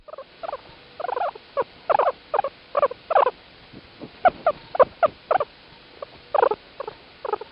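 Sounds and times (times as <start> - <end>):
guinea pig squeaking: 0.1 - 3.3, 4.2 - 5.5, 6.3 - 7.5.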